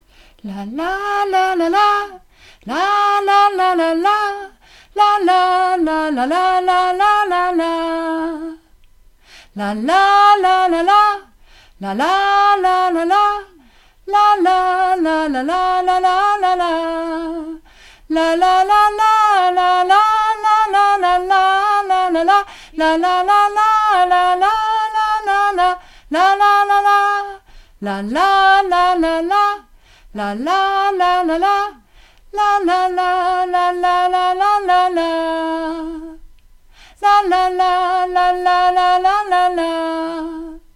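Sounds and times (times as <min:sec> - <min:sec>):
soprano singing la la refrain: 0:00.4 - 0:08.7, 0:09.5 - 0:36.3, 0:37.0 - 0:40.7.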